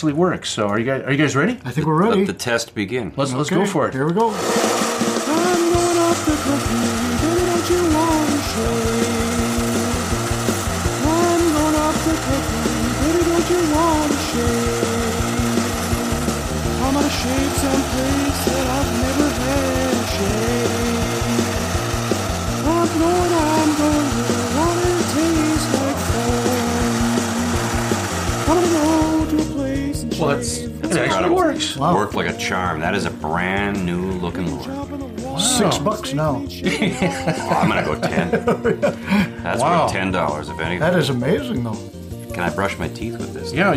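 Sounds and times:
speech: 0:00.0 - 0:04.9, 0:31.2 - 0:43.7
hot air dryer running: 0:04.2 - 0:29.8
laughter: 0:36.6 - 0:39.6.

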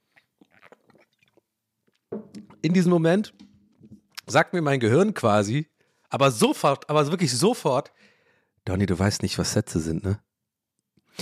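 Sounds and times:
sipping a drink: 0:00.0 - 0:02.7
speech: 0:02.6 - 0:03.4, 0:04.3 - 0:10.3.

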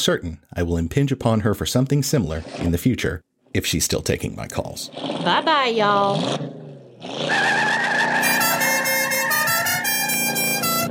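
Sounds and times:
speech: 0:00.0 - 0:08.0
musical car horn of a fictional vehicle: 0:07.7 - 0:10.8.

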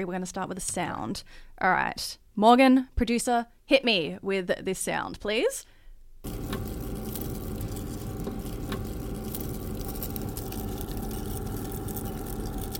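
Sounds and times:
speech: 0:00.0 - 0:06.4
worms crunching while eating: 0:06.2 - 0:12.7.

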